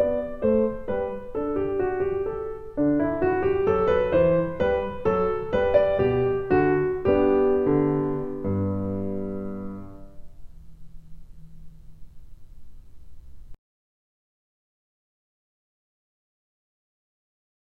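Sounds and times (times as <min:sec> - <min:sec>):
piano minuet: 0:00.0 - 0:13.6.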